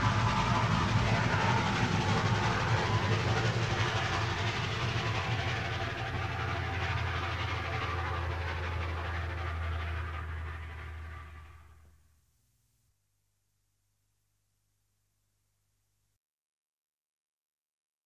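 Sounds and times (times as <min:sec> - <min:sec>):
steam train passing: 0:00.0 - 0:11.9.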